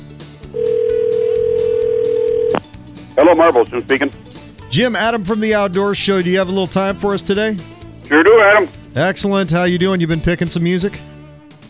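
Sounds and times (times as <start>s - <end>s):
telephone dial tone for a call to a fishing shop: 0.6s - 2.6s
speech: 3.2s - 11.1s.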